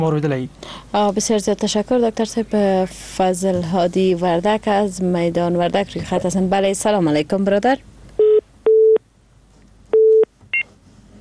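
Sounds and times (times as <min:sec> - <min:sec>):
speech: 0:00.0 - 0:07.9
telephone beeps after a caller's line is cut off: 0:08.2 - 0:09.0, 0:09.9 - 0:10.7.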